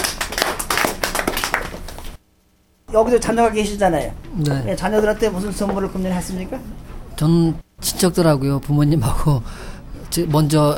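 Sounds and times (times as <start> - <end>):
audience clapping: 0.0 - 2.2
speech: 2.9 - 10.7.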